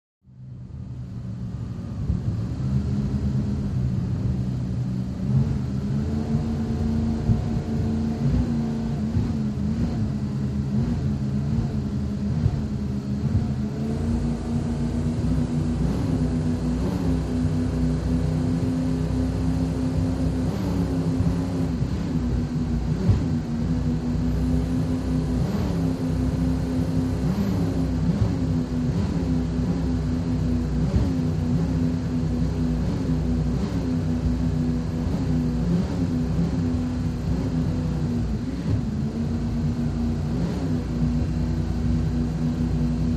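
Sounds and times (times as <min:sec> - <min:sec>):
offshore power boat interior cruise: 0:00.5 - 0:43.0.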